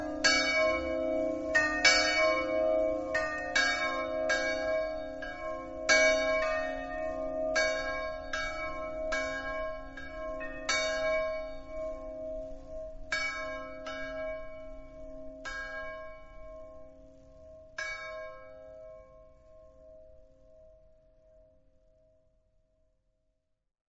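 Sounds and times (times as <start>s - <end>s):
bells ringing: 0.0s - 16.8s.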